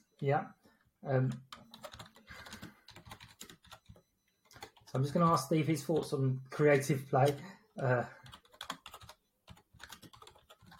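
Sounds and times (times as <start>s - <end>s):
speech: 0.2s - 1.6s, 4.9s - 8.3s
typing on a computer keyboard: 1.3s - 4.9s, 8.2s - 10.7s.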